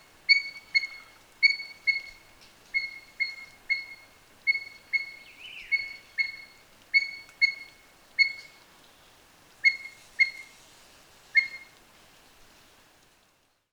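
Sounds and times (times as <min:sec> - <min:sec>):
Himalayan monal calling: 0:00.0 - 0:08.6, 0:09.6 - 0:10.6, 0:11.3 - 0:11.8.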